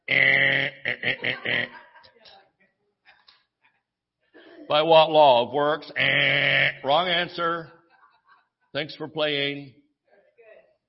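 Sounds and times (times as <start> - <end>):
laughter: 0.0 - 2.4, 4.4 - 9.0
voice imitating a basketball penalty buzzer: 0.1 - 1.8, 5.9 - 7.4
speech: 4.7 - 7.8, 8.7 - 9.8.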